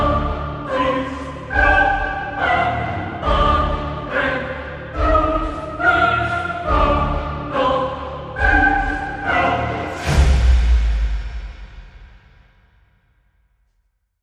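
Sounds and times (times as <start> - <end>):
choir singing: 0.0 - 11.2.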